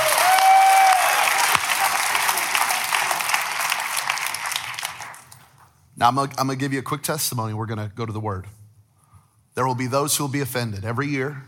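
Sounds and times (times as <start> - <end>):
audience golf clap: 0.0 - 5.5
speech: 6.0 - 8.6, 9.6 - 11.4.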